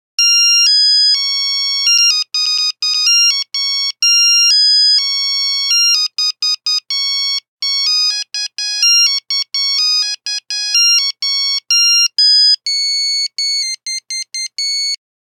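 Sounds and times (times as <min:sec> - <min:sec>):
Nokia phone buzzer: 0:00.2 - 0:15.0.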